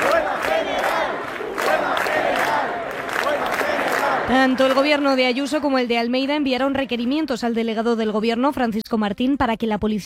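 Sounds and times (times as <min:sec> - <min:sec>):
crowd protesting over the housing crisis: 0:00.0 - 0:05.6
speech: 0:04.3 - 0:10.0.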